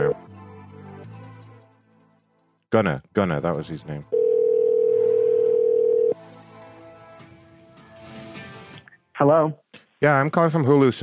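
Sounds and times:
speech: 2.7 - 4.2, 9.2 - 11.0
telephone dial tone: 4.1 - 6.2.

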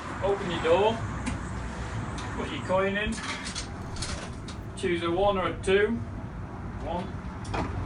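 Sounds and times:
speech: 0.3 - 1.1, 2.4 - 3.5, 4.8 - 6.1, 6.9 - 7.7
raw milk vending machine running: 3.5 - 6.6.

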